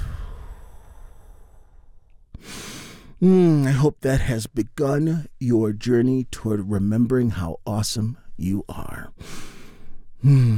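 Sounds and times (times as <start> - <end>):
deep healing breath during a guided relaxation: 0.0 - 3.2, 9.2 - 10.5
speech: 3.2 - 9.5, 10.2 - 10.5.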